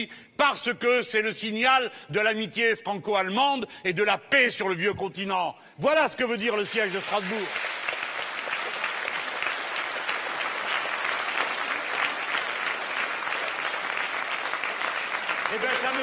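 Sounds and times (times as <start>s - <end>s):
speech: 0.0s - 7.9s, 15.5s - 16.0s
audience applause: 6.7s - 16.0s.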